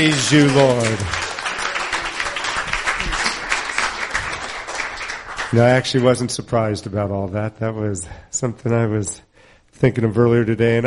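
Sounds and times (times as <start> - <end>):
speech: 0.0 - 1.3, 5.5 - 9.2, 9.8 - 10.8
audience cheering and applauding: 0.0 - 5.6.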